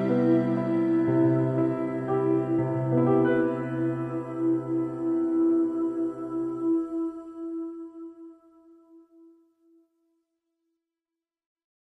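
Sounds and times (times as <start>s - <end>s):
romantic piano music for relaxation: 0.0s - 8.4s.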